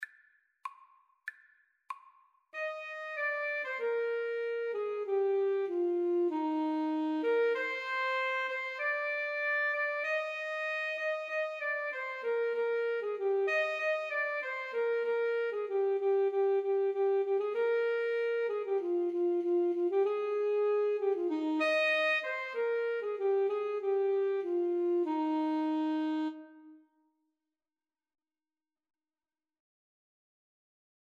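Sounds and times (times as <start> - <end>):
alto saxophone duet: 2.6 - 27.0.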